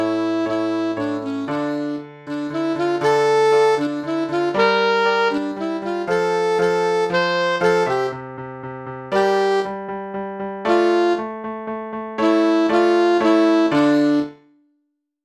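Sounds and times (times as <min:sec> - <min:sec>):
saxophone: 0:00.0 - 0:08.2, 0:09.1 - 0:09.8, 0:10.7 - 0:11.3, 0:12.2 - 0:14.5
short piano piece: 0:00.0 - 0:14.7.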